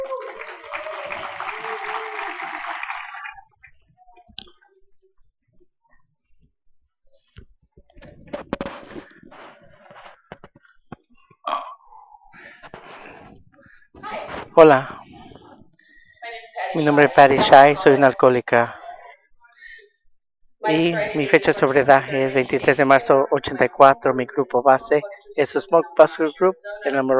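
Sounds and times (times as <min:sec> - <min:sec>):
audience applause: 0:00.0 - 0:03.5
faint clicks and shuffling: 0:03.5 - 0:11.4, 0:12.4 - 0:16.2
speech: 0:14.6 - 0:15.0, 0:16.8 - 0:18.8, 0:20.7 - 0:27.1.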